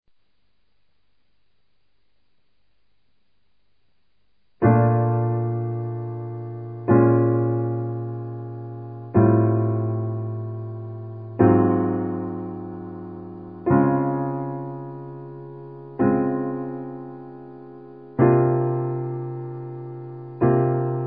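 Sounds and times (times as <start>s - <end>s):
chords: 4.6s - 21.0s.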